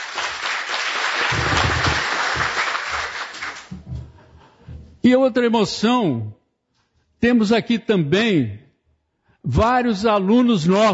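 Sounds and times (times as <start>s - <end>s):
applause in tribute: 0.0s - 3.8s
speech: 5.1s - 6.4s, 7.2s - 8.6s, 9.4s - 10.9s.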